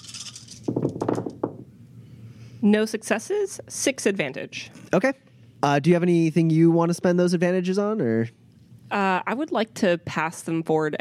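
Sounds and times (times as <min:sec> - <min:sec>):
dice tumbling across a surface: 0:00.0 - 0:01.4
speech: 0:02.6 - 0:10.9.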